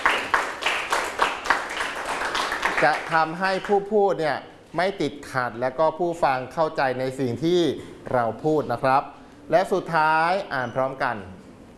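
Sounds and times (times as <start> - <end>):
applause from a class: 0.0 - 3.8
speech: 2.8 - 11.4.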